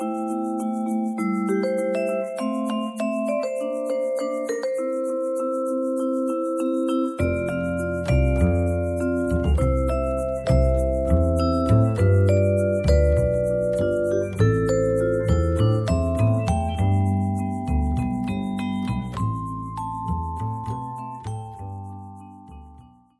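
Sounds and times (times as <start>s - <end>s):
vibraphone: 0.0s - 23.0s.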